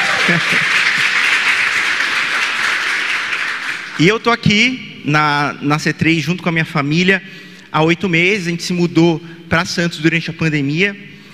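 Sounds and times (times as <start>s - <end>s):
laughter: 0.0s - 1.1s
audience applause: 0.0s - 4.0s
speech: 0.3s - 0.9s, 4.0s - 11.1s.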